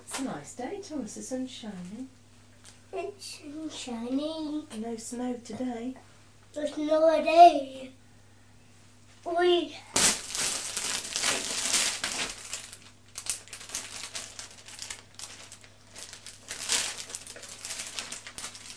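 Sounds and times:
faint steady hum: 0.0s - 18.7s
speech: 0.2s - 2.2s, 2.9s - 8.0s, 9.2s - 10.0s
gift wrap paper crinkling and rustling: 9.9s - 18.7s.

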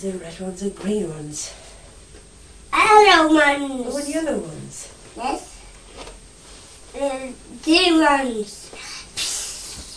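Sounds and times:
speech: 0.0s - 1.8s, 2.9s - 5.5s, 6.9s - 8.9s
child imitating hiss of truck brakes: 8.8s - 9.9s.

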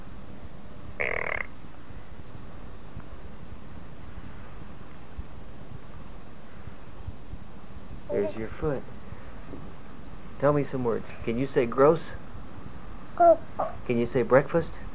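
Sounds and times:
child imitating a duck quack: 8.1s - 8.4s, 13.2s - 13.8s
speech: 8.2s - 8.9s, 10.4s - 12.2s, 13.2s - 14.8s.

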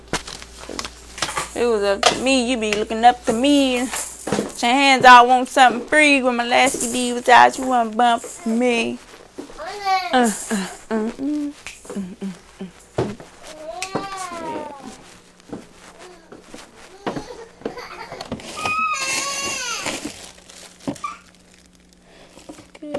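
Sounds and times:
speech: 1.6s - 4.0s, 4.6s - 9.1s, 9.8s - 11.3s
child whining: 9.6s - 11.6s, 13.5s - 15.0s, 16.0s - 20.1s.

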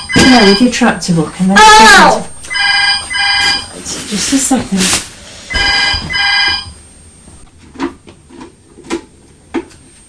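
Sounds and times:
telephone ringing: 0.0s - 0.8s, 2.5s - 3.8s, 5.5s - 6.8s
speech: 0.3s - 2.3s, 4.1s - 5.1s.

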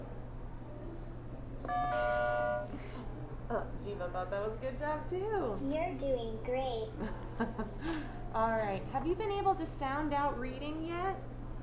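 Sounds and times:
game buzzer: 1.7s - 2.8s
speech: 3.5s - 11.3s.

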